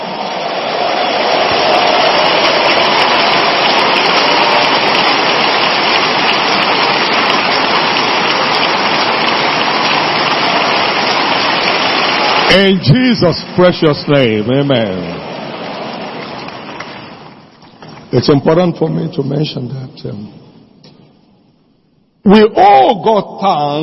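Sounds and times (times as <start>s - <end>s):
audience clapping: 0.0s - 18.7s
speech: 12.5s - 15.2s, 18.1s - 20.4s, 22.3s - 23.8s.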